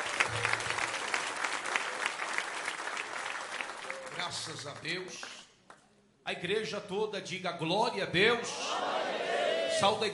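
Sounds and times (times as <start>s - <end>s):
audience applauding: 0.0s - 5.4s
speech: 4.3s - 5.4s, 6.3s - 10.1s.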